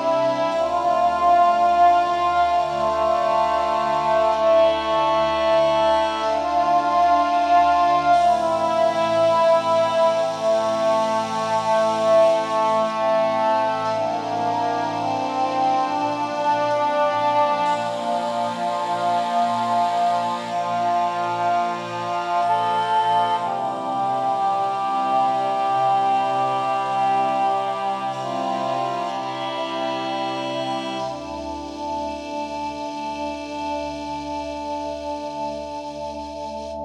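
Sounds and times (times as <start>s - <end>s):
music: 0.0s - 36.8s.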